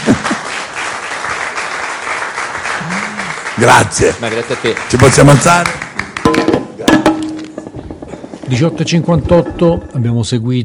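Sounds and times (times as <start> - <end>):
crowd applauding: 0.0 - 6.4
person whooping: 2.8 - 3.5
speech: 3.6 - 6.4, 8.5 - 10.6.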